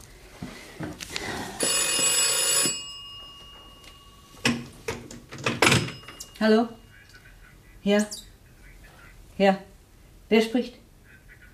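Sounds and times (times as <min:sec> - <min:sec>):
telephone bell ringing: 0:01.6 - 0:07.0
speech: 0:06.4 - 0:06.8, 0:07.8 - 0:08.2, 0:09.4 - 0:09.7, 0:10.3 - 0:10.8.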